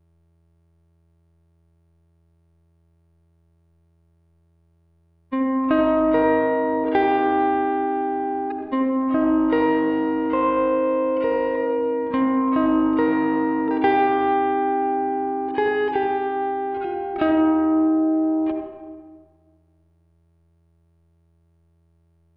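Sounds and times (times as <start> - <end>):
guitar texture: 5.3 - 19.3.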